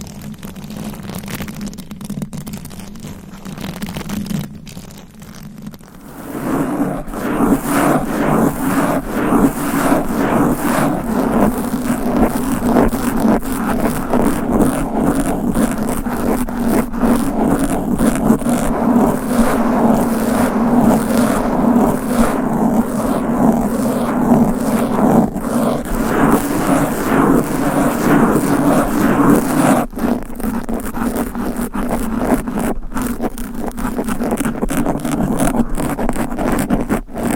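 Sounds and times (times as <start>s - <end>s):
fast aggressive nails scratching a microphone cover: 1.0s - 37.3s
steady low hum: 5.9s - 30.3s.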